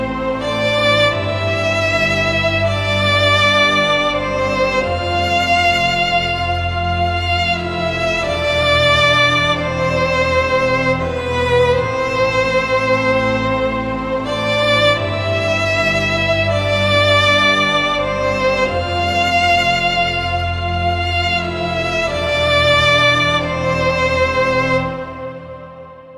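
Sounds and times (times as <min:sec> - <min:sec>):
sad emotional violin music: 0:00.0 - 0:26.1.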